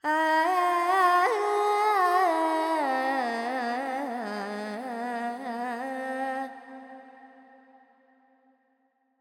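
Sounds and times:
Carnatic female vocal alaps in G pentatonic: 0.0s - 6.6s.

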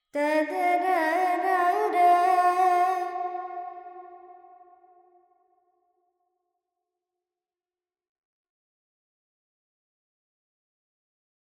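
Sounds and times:
Carnatic female vocal alaps in Dorian: 0.2s - 3.5s.

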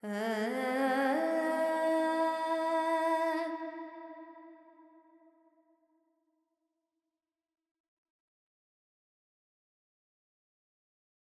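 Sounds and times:
Carnatic female alap in raga Panthuvarali with reverb: 0.0s - 4.0s.

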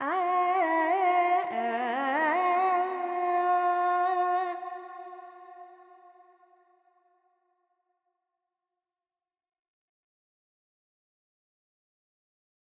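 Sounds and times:
Carnatic female vocal alaps in Dorian mode: 0.0s - 6.2s.

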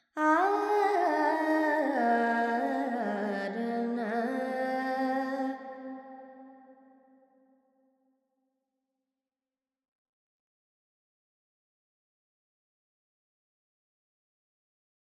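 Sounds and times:
Carnatic female alap in Lydian with reverb: 0.2s - 5.6s.

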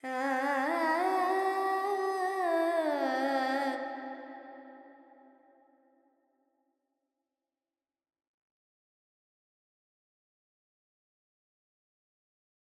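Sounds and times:
Carnatic female alap in raga Panthuvarali with reverb: 0.0s - 4.2s.

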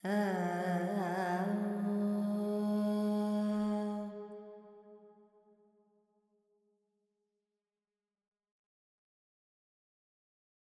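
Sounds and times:
Carnatic female alap in Lydian with reverb: 0.0s - 4.3s.

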